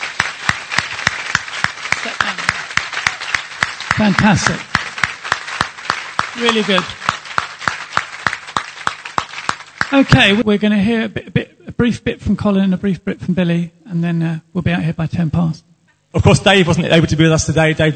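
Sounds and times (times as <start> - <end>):
audience clapping: 0.0 - 10.4, 16.4 - 17.0
speech: 4.0 - 4.7, 6.4 - 7.0, 9.9 - 17.9.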